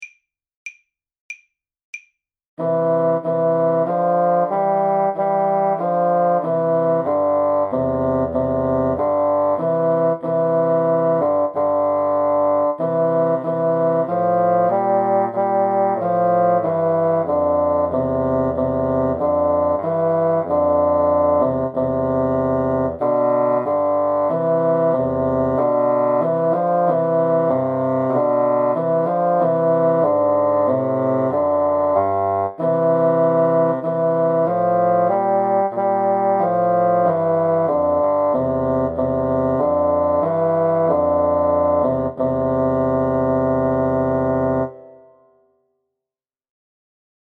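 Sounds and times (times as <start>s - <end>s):
bassoon duet: 2.6s - 45.3s.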